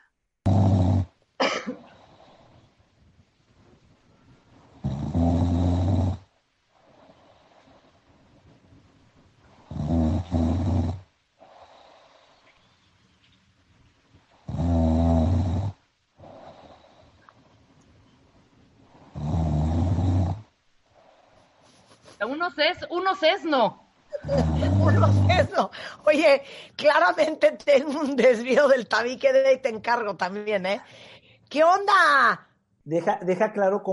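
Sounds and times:
snoring: 0.4 - 1.2, 4.8 - 8.0, 9.6 - 12.5, 14.4 - 17.3, 18.8 - 21.3, 24.2 - 25.5
speech: 22.2 - 33.9
laughter: 24.1 - 25.4.

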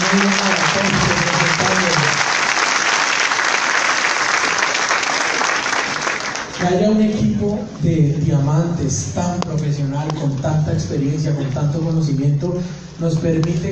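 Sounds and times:
audience applause: 0.0 - 6.6
speech: 0.1 - 0.9, 6.7 - 13.7.

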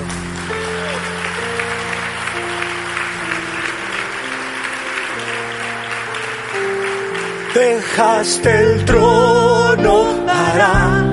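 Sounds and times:
audience applauding loudly: 0.0 - 8.8
speech: 7.6 - 11.0.

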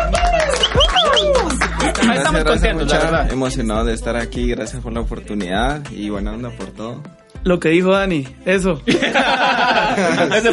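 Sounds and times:
audience clapping: 0.0 - 2.2
crowd cheering: 0.0 - 2.2
whistles from the crowd: 0.4 - 1.5
laughter: 1.2 - 3.1, 8.9 - 10.5
speech: 2.4 - 10.5.

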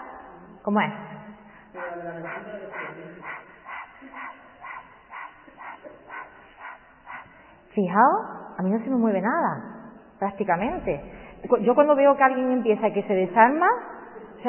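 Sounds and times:
speech: 0.6 - 1.1, 2.0 - 3.3, 7.8 - 14.4
rapid panting breathing exercise: 1.4 - 8.5.

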